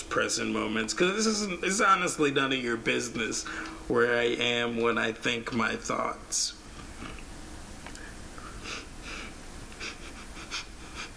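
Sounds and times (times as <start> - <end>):
speech: 0.2 - 6.6
breathing out through the nose: 3.4 - 3.8.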